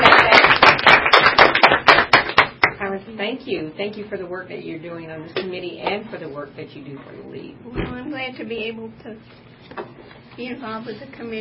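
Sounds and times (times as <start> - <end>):
small group hand clapping at a League committee meeting: 0.0 - 2.8
speech: 3.4 - 11.4.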